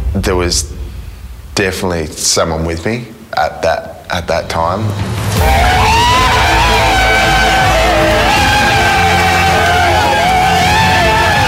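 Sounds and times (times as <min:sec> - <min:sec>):
speech: 0:00.2 - 0:00.8, 0:01.6 - 0:06.0
beach crowd yelling and cheering: 0:05.1 - 0:11.4.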